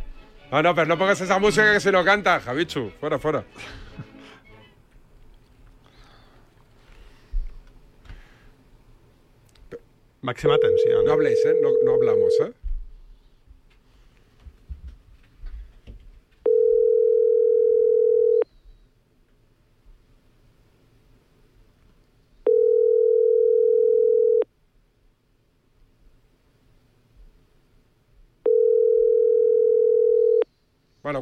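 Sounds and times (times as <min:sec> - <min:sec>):
speech: 0:00.5 - 0:04.1, 0:10.2 - 0:12.6
telephone ringback tone: 0:10.5 - 0:12.4, 0:16.4 - 0:18.4, 0:22.4 - 0:24.4, 0:28.4 - 0:30.4.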